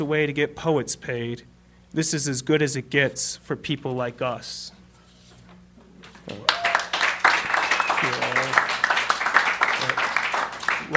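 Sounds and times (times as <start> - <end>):
speech: 0.0 - 4.8, 6.3 - 6.6
audience applause: 6.3 - 10.9.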